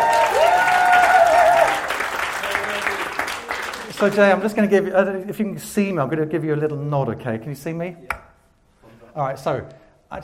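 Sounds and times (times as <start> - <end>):
wavering whoop or whistle: 0.0 - 1.8
audience applause: 0.0 - 4.4
speech: 4.0 - 8.2, 9.2 - 10.2.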